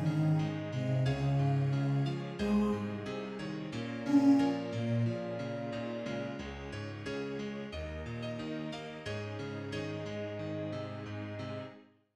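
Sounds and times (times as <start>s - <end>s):
person singing: 0.0s - 3.4s, 4.0s - 5.7s
bass: 0.0s - 11.6s
piano chords: 0.0s - 11.8s.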